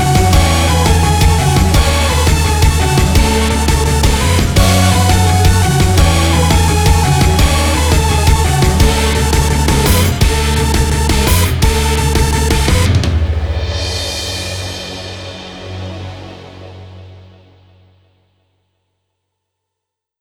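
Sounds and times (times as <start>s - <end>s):
off vocal instrumental music: 0.0s - 15.5s.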